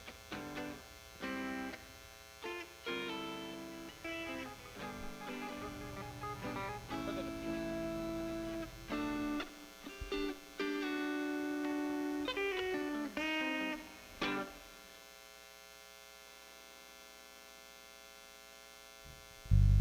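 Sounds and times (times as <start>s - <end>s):
buzzing noise: 0.0s - 19.7s
audio feedback: 1.2s - 14.5s, 19.1s - 19.7s.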